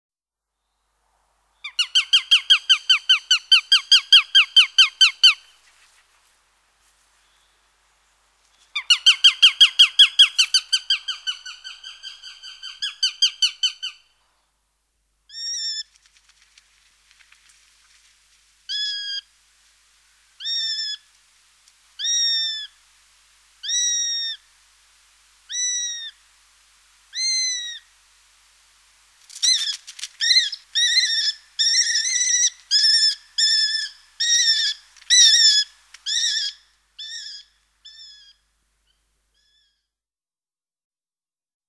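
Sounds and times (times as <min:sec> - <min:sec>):
Eurasian sparrowhawk calling: 0:01.6 - 0:05.5, 0:08.7 - 0:14.1, 0:15.3 - 0:16.0, 0:18.7 - 0:19.3, 0:20.4 - 0:21.1, 0:22.0 - 0:22.8, 0:23.6 - 0:24.5, 0:25.5 - 0:26.2, 0:27.1 - 0:27.9, 0:29.4 - 0:38.4.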